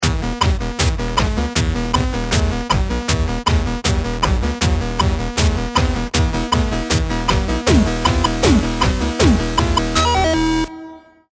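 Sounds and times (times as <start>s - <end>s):
round ten second countdown: 0.0s - 11.3s.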